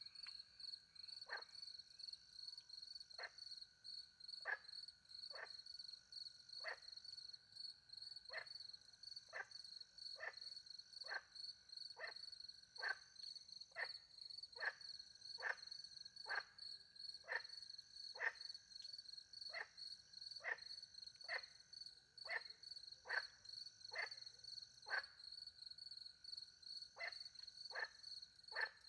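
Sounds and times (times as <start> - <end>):
crickets chirping: 0.0 - 28.8
frog raspy croaks: 5.3 - 5.6, 6.6 - 6.9, 9.3 - 11.3, 12.8 - 13.1, 13.8 - 14.0, 14.6 - 16.5, 17.2 - 19.8, 20.4 - 21.6, 22.2 - 25.2, 26.9 - 28.8.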